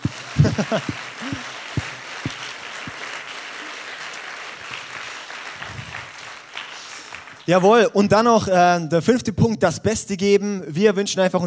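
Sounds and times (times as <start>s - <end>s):
audience applause: 0.0s - 7.8s
laughter: 0.1s - 2.4s
speech: 0.4s - 1.4s, 7.5s - 11.4s.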